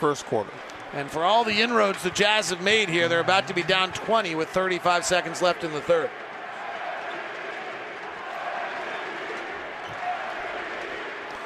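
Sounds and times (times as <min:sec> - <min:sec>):
speech: 0:00.0 - 0:06.3
arena crowd chanting MVP: 0:04.3 - 0:11.4.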